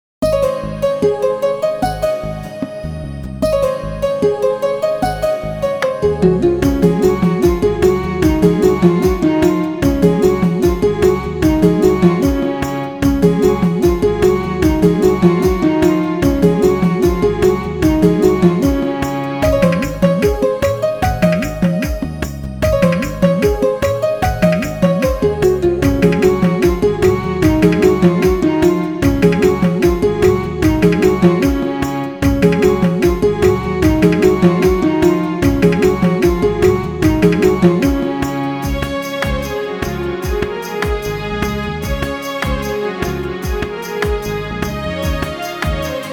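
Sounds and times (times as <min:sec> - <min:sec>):
Indian countryside music: 0:00.2 - 0:46.1.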